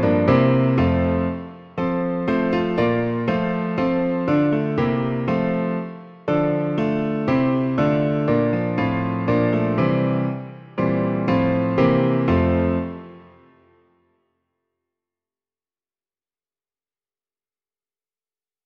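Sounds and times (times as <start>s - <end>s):
piano version of an Easter hymn: 0.0s - 14.0s.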